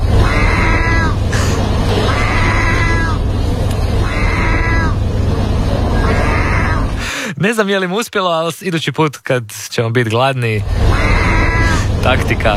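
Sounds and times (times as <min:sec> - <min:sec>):
gull giving cat-like mewing calls at a cat biscuit vending machine: 0:00.0 - 0:07.1, 0:10.6 - 0:12.5
constant low hum of noise: 0:00.0 - 0:12.5
speech: 0:07.4 - 0:11.3, 0:12.0 - 0:12.5.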